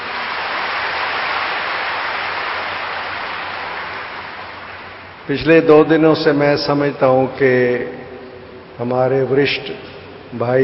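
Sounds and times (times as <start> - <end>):
loud applause from a large audience: 0.0 - 5.2
speech: 5.3 - 8.0, 8.8 - 10.6.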